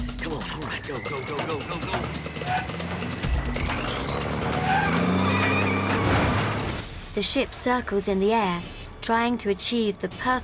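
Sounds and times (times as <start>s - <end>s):
truck engine roaring: 0.6s - 6.8s
truck tires squealing and skidding: 0.6s - 6.8s
speech: 0.9s - 4.2s, 7.2s - 10.4s.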